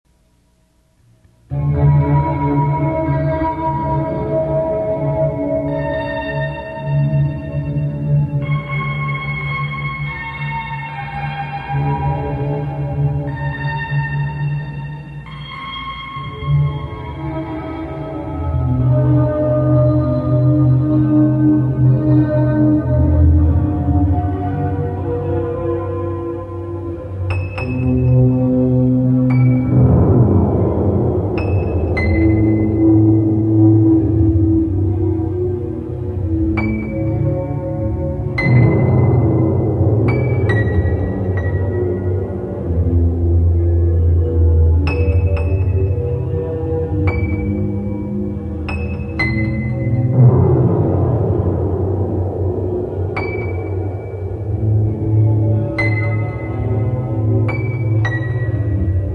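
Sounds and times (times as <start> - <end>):
instrumental music: 0.1 - 59.1.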